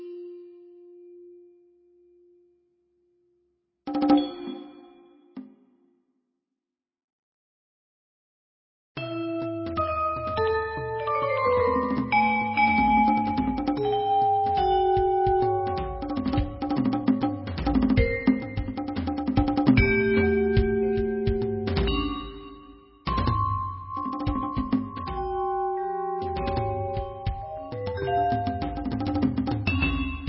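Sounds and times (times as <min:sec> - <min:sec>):
percussion duet: 0:03.9 - 0:05.8, 0:09.0 - 0:30.2.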